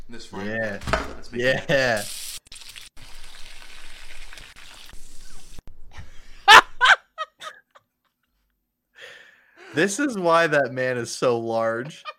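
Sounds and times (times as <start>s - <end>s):
speech: 0.1s - 2.2s, 9.8s - 12.1s
thick-cut bacon sizzling in a pan: 2.0s - 5.6s.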